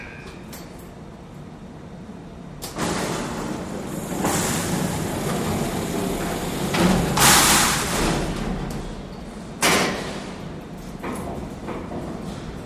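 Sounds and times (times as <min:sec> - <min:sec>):
freight elevator door: 0:02.6 - 0:12.5.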